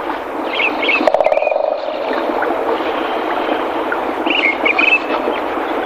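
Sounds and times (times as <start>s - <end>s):
woodpecker drumming: 0.1s - 5.8s
short whistled phrases of other birds: 0.5s - 3.6s, 4.3s - 5.4s.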